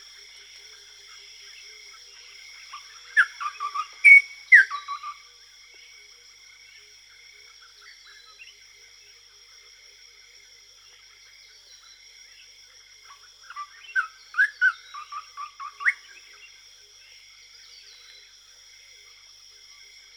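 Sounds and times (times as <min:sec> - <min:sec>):
western nicator: 0:02.7 - 0:05.3, 0:13.1 - 0:16.6.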